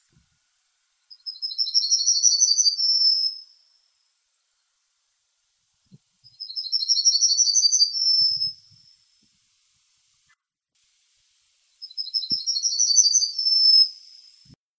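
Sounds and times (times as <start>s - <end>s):
bird song of high rapid trilled phrases: 1.0s - 3.7s, 6.2s - 9.2s, 11.8s - 14.5s.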